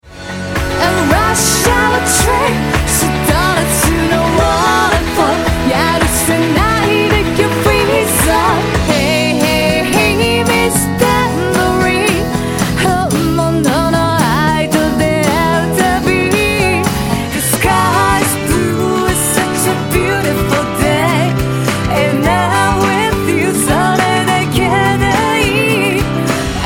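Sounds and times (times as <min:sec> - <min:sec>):
guitar: 0:00.0 - 0:26.6.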